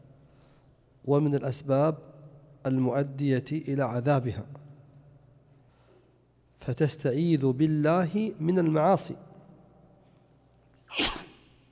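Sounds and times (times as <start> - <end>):
speech: 1.0 - 4.7, 6.6 - 9.3
person sneezing: 10.9 - 11.7.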